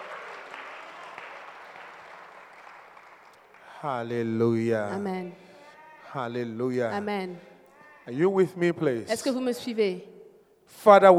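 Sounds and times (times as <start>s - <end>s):
congregation applause and cheering in a church service: 0.0s - 5.2s
speech: 3.8s - 5.4s, 6.1s - 10.1s, 10.7s - 11.1s.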